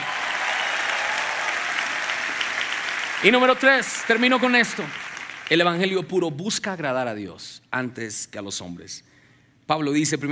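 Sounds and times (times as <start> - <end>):
audience applauding loudly: 0.0 - 6.0
speech: 3.2 - 9.1, 9.7 - 10.2.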